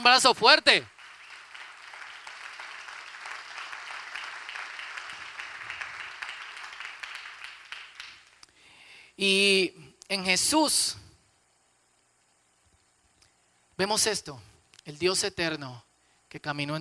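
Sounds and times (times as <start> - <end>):
speech: 0.0 - 1.0, 9.2 - 11.0, 13.8 - 16.7
audience applause: 0.9 - 8.4.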